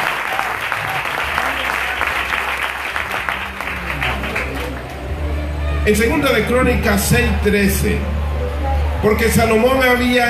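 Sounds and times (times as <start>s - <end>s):
audience applause: 0.0s - 5.4s
speech: 5.8s - 8.2s, 9.0s - 10.2s.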